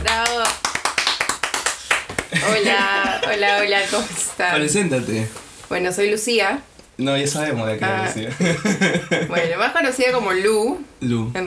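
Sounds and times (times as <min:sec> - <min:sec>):
audience clapping: 0:00.0 - 0:04.4
laughter: 0:02.3 - 0:04.6, 0:08.1 - 0:09.7
speech: 0:02.4 - 0:11.4.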